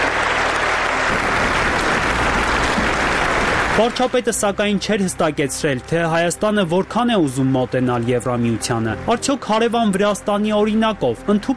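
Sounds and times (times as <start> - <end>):
standing ovation from European lawmakers after Pashinyan's speech: 0.0 - 4.6
speech: 3.8 - 11.5.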